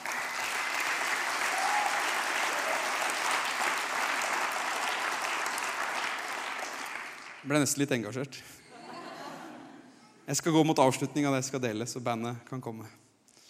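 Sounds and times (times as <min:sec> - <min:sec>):
applause: 0:00.0 - 0:07.5
speech: 0:07.4 - 0:08.6, 0:10.3 - 0:13.0
laughter: 0:08.6 - 0:10.0.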